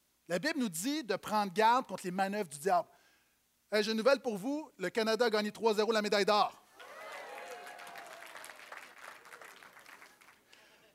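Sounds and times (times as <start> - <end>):
speech: 0.3 - 3.0, 3.7 - 6.6
people cheering: 6.8 - 10.4
audience applause: 6.8 - 10.9.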